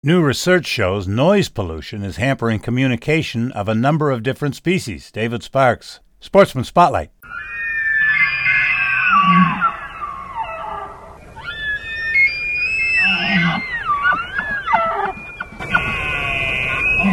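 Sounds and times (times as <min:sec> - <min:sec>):
speech: 0:00.0 - 0:07.5, 0:09.2 - 0:09.6
double reed duck call blown in raspy nasal squawks: 0:07.2 - 0:17.1.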